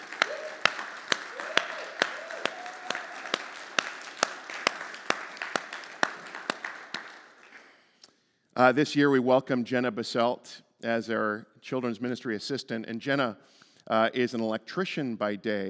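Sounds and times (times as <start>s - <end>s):
church congregation clapping for its senior staff: 0.0s - 7.9s
speech: 8.6s - 15.6s.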